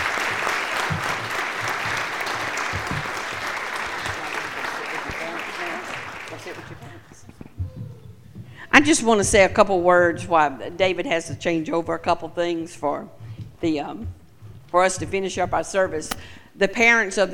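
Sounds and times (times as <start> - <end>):
crowd applause: 0.0 - 7.0
speech: 8.8 - 17.3.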